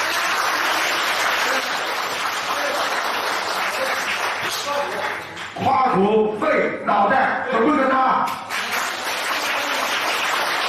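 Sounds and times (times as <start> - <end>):
audience applause: 0.0 - 5.4, 8.5 - 10.6
speech: 6.0 - 8.4.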